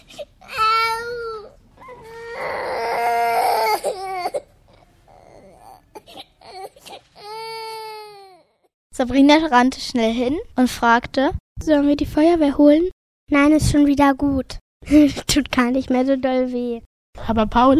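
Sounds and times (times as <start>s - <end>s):
girl whimpering and crying: 0.0s - 8.7s
speech: 9.0s - 17.7s.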